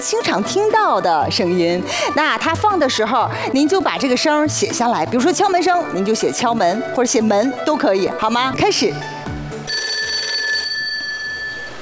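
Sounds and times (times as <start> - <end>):
speech: 0.0 - 9.2
telephone ringing: 9.6 - 11.8.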